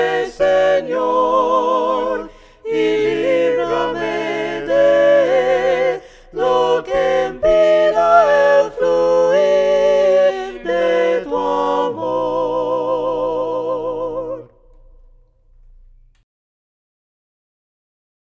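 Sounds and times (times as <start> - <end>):
voices: 0.2 - 13.9.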